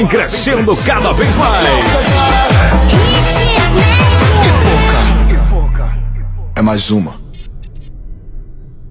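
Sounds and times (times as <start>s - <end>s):
car audio music: 0.0s - 6.6s.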